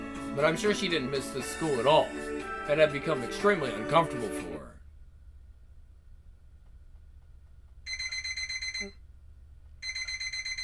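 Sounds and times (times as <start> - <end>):
speech: 0.4 - 4.8
alarm clock electronic beeping: 7.9 - 9.0, 9.8 - 10.6.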